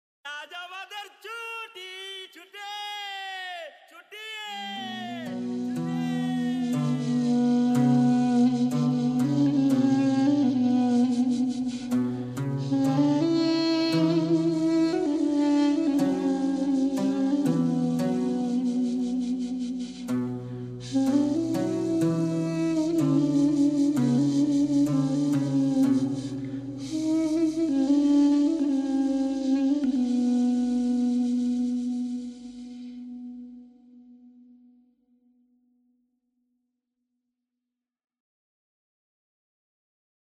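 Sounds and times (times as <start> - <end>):
instrumental music: 4.8 - 34.8.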